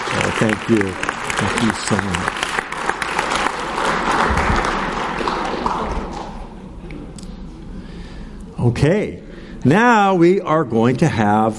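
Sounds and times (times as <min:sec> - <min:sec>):
audience applauding: 0:00.0 - 0:06.5
speech: 0:00.4 - 0:02.5, 0:08.6 - 0:11.5.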